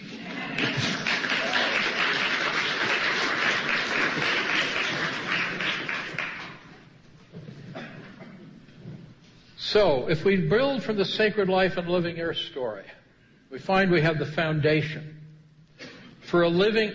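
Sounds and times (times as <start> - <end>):
audience applause: 0.0 - 6.8
speech: 9.8 - 15.2, 16.3 - 16.9.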